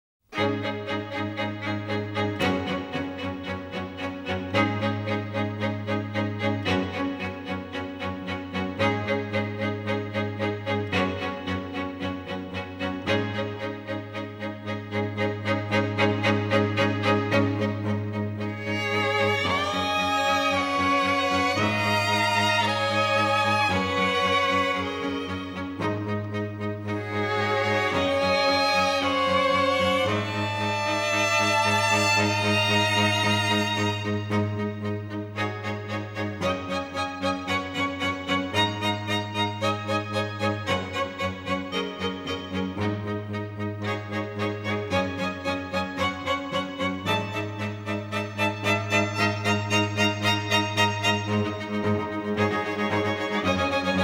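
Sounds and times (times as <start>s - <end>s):
strings: 0.3s - 54.0s.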